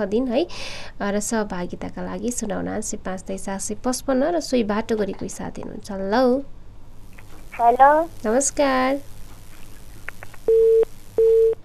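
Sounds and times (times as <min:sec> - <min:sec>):
speech: 0:00.0 - 0:06.6, 0:07.6 - 0:09.1, 0:10.5 - 0:10.8
telephone busy tone after a caller's line dropped during a radio phone-in: 0:10.5 - 0:11.6.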